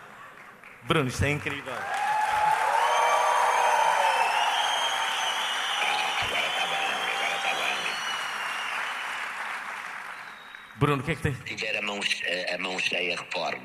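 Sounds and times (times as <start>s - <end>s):
audience applause: 0.0s - 10.8s
speech: 0.8s - 2.0s, 10.8s - 13.6s.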